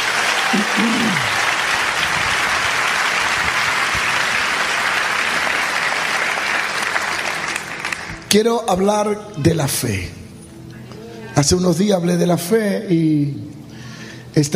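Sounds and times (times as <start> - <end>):
audience applause: 0.0 - 8.2
speech: 0.8 - 1.3, 8.3 - 10.2, 11.4 - 13.6, 14.3 - 14.5.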